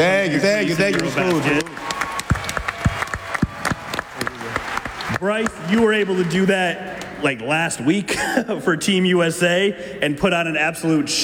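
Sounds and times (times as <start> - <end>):
speech: 0.0 - 2.0, 5.2 - 11.2
applause: 0.8 - 6.7.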